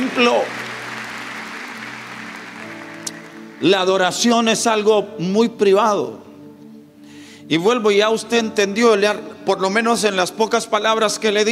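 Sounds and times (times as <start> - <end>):
church congregation applauding during a worship service: 0.0 - 4.7
speech: 0.1 - 0.6, 3.6 - 6.2, 7.5 - 11.5.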